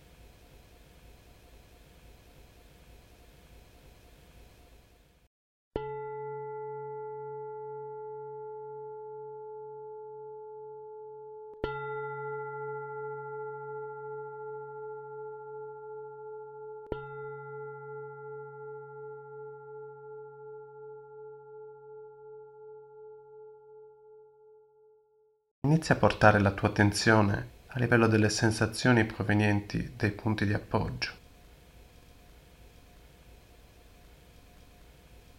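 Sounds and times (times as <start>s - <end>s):
meditation bell ringing: 5.8s - 24.2s
speech: 25.7s - 31.2s.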